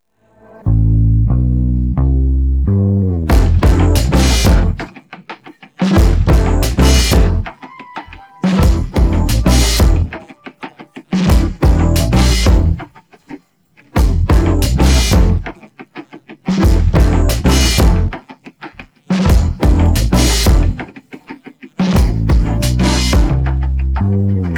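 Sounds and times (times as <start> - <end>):
instrumental music: 0.6 - 12.9, 14.0 - 15.7, 16.5 - 18.5, 19.2 - 24.5.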